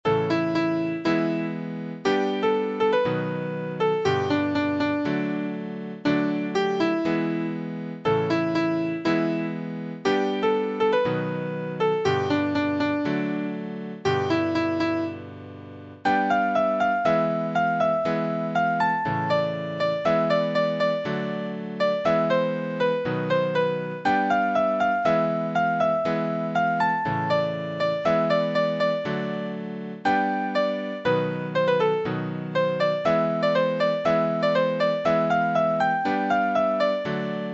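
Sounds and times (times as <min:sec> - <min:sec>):
piano: 0:00.0 - 0:37.5.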